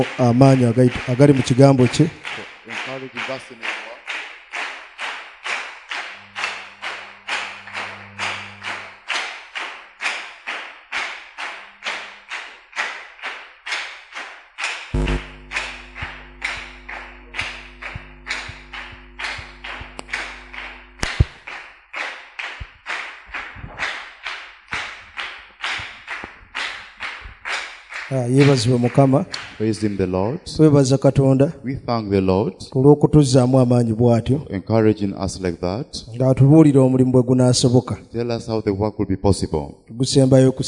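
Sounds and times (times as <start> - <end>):
speech: 0.0 - 3.7, 28.5 - 40.6
audience hand clapping: 0.0 - 30.1.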